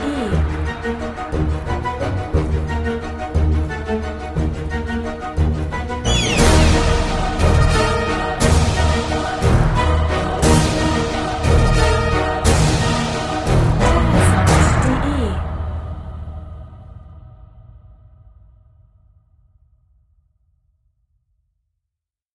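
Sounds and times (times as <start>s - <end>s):
waltz music: 0.0s - 15.4s.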